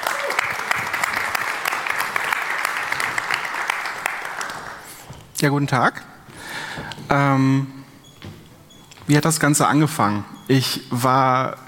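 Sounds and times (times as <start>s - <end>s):
audience applause: 0.0s - 5.0s
speech: 5.4s - 6.1s, 6.8s - 7.8s, 9.1s - 11.6s.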